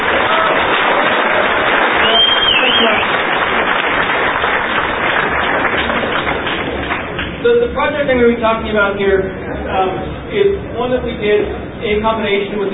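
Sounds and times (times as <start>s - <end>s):
crowd applauding: 0.0s - 7.4s
speech: 8.1s - 12.7s.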